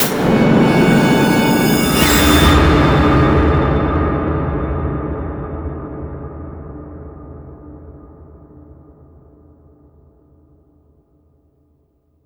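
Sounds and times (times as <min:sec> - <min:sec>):
sci-fi sting: 0:00.0 - 0:04.1.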